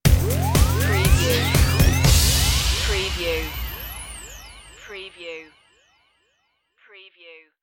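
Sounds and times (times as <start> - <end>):
welcome stinger: 0.0 - 5.8.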